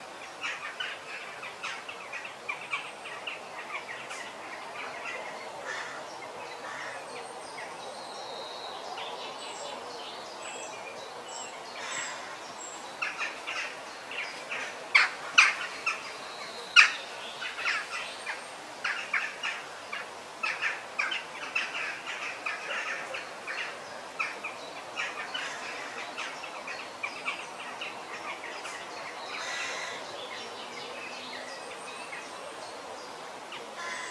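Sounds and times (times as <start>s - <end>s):
birds singing in forest meadows: 0.2s - 34.0s.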